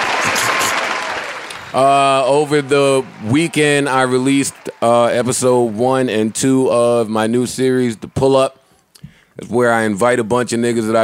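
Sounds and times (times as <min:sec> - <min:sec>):
applause from a played video: 0:00.0 - 0:08.3
speech: 0:01.7 - 0:08.6, 0:09.4 - 0:11.0.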